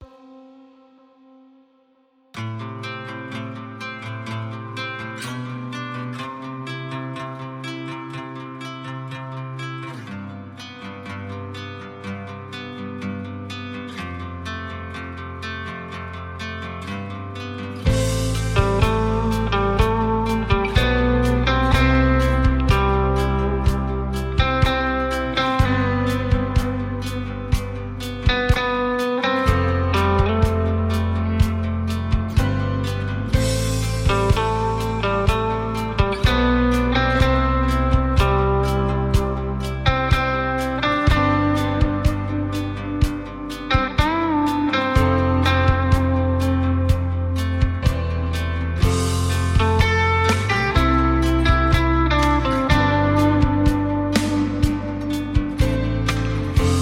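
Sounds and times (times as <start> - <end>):
instrumental music: 0.0 - 56.8.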